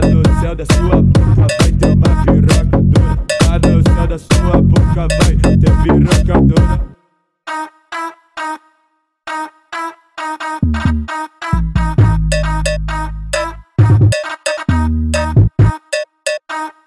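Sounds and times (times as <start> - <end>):
funk and electrofunk music: 0.0 - 7.0, 10.6 - 16.4.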